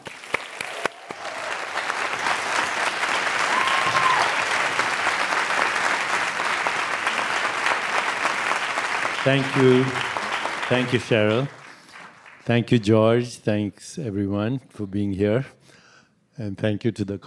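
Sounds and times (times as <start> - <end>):
audience applause at a Commonwealth Club event welcoming author Deepak Chopra: 0.0 - 12.6
speech: 9.2 - 10.1, 10.7 - 11.6, 12.5 - 15.6, 16.4 - 17.2.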